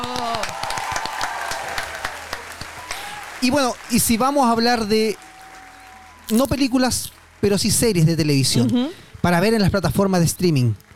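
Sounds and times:
audience applause: 0.0 - 10.9
speech: 3.4 - 5.2, 6.3 - 10.8.

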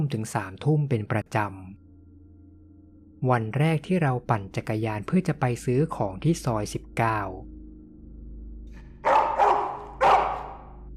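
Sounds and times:
speech: 0.0 - 1.8, 3.2 - 7.5
dog barking: 9.0 - 10.8.

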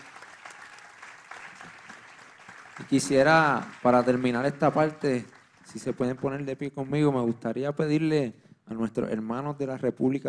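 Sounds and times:
audience applause: 0.0 - 7.0
speech: 2.8 - 10.2.

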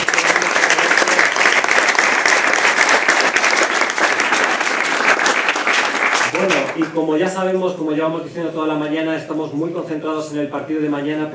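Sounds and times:
loud crowd applause: 0.0 - 7.0
speech: 6.8 - 11.3.

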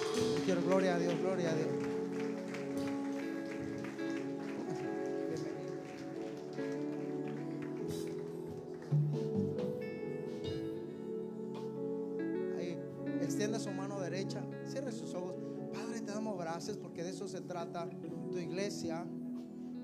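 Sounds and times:
audience applauding: 0.0 - 10.6
sustained musical tones: 0.0 - 19.8
speech: 0.5 - 1.8, 17.4 - 19.2.

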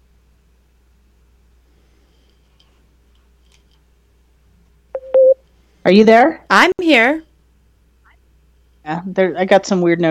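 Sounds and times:
electronic device beeping: 5.0 - 5.4
speech: 5.8 - 7.3, 8.8 - 10.0.

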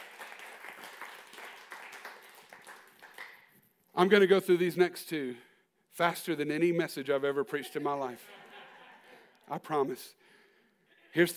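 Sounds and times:
crowd clapping: 0.0 - 3.6
speech: 4.0 - 8.4, 9.5 - 10.2, 11.1 - 11.3
laughter: 7.5 - 9.5.

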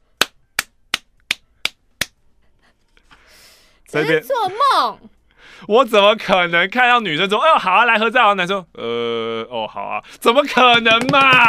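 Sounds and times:
hands clapping: 0.2 - 2.2, 10.5 - 11.4
speech: 3.9 - 11.4.

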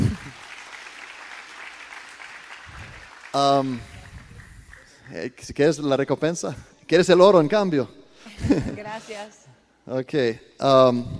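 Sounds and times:
audience applause: 0.0 - 5.2
speech: 3.3 - 3.9, 5.1 - 11.1
laughter: 8.2 - 9.1.

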